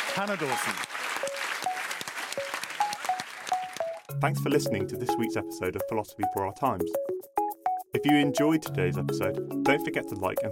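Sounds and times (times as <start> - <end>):
audience applause: 0.0 - 4.1
speech: 0.2 - 1.3, 4.1 - 7.1, 7.9 - 10.5.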